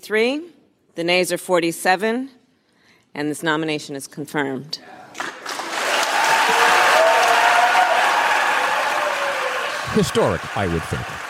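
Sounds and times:
speech: 0:00.0 - 0:02.4, 0:03.1 - 0:05.3, 0:10.0 - 0:11.2
applause in the Senate chamber: 0:05.2 - 0:11.2
faint voices and cheers: 0:06.0 - 0:11.2.

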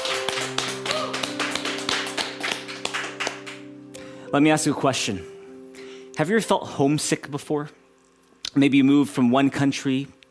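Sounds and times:
audience clapping: 0:00.0 - 0:03.7
speech: 0:04.3 - 0:05.3, 0:06.2 - 0:07.8, 0:08.5 - 0:10.2.

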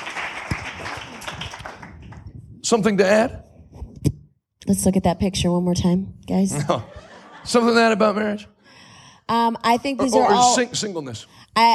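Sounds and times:
audience hand clapping: 0:00.0 - 0:02.5
speech: 0:02.7 - 0:03.4, 0:04.7 - 0:08.5, 0:09.3 - 0:11.7
laughter: 0:06.6 - 0:08.4.

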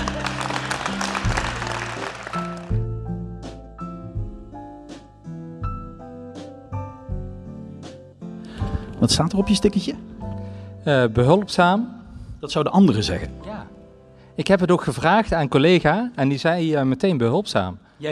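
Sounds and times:
audience applause: 0:00.0 - 0:02.8
speech: 0:09.0 - 0:10.1, 0:10.8 - 0:13.5, 0:14.4 - 0:18.0.

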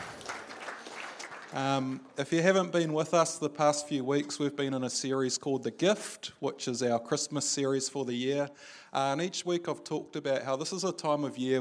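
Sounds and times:
audience clapping: 0:00.0 - 0:02.2
speech: 0:01.5 - 0:11.5.

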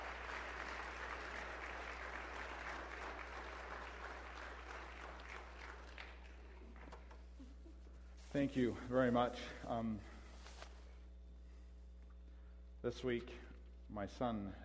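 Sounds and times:
audience applause for volunteers: 0:00.0 - 0:07.4
low steady hum: 0:00.0 - 0:14.6
speech: 0:08.4 - 0:10.1, 0:12.8 - 0:14.6.

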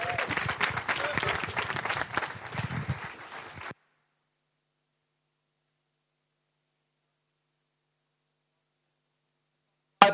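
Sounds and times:
church congregation clapping to welcome a preacher: 0:00.0 - 0:03.8.

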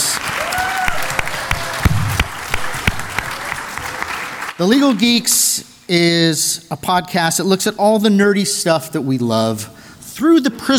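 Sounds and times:
crowd applauding: 0:00.0 - 0:05.2
speech: 0:04.6 - 0:10.7.

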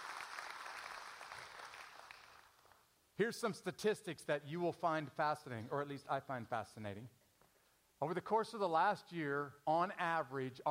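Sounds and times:
church congregation clapping: 0:00.0 - 0:02.8
speech: 0:03.2 - 0:07.2, 0:08.0 - 0:10.7.

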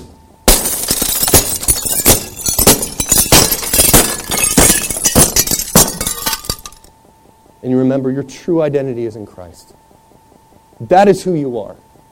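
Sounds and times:
hammer smashing glass: 0:00.0 - 0:06.9
shattering, tinkling glass shards: 0:00.5 - 0:06.9
speech: 0:07.6 - 0:09.8, 0:10.8 - 0:11.9.

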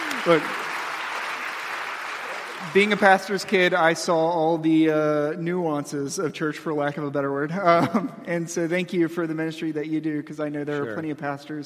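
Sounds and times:
hand clapping: 0:00.0 - 0:03.2
speech: 0:00.2 - 0:00.6, 0:02.6 - 0:11.6
laughter: 0:07.5 - 0:08.3.

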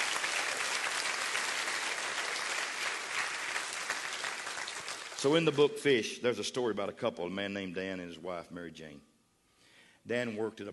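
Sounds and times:
crowd applause: 0:00.0 - 0:05.4
speech: 0:05.2 - 0:09.1, 0:10.0 - 0:10.7.

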